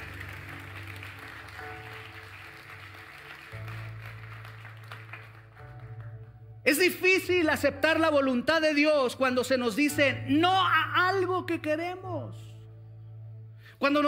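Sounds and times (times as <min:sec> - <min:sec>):
audience applause: 0:00.0 - 0:06.1
sustained low keyboard chords: 0:00.0 - 0:14.0
speech: 0:06.7 - 0:12.2, 0:13.8 - 0:14.0.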